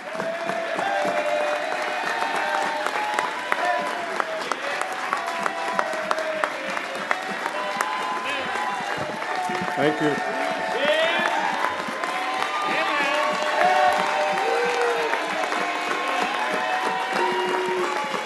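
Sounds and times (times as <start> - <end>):
crowd applause: 0.0 - 18.2
speech: 9.8 - 10.3.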